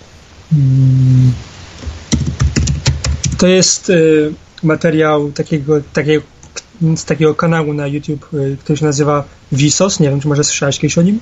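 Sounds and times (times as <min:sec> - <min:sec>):
low steady humming tone: 0:00.0 - 0:01.7
speech: 0:00.5 - 0:01.5, 0:03.4 - 0:11.1
keys clattering on a computer keyboard: 0:02.1 - 0:03.4.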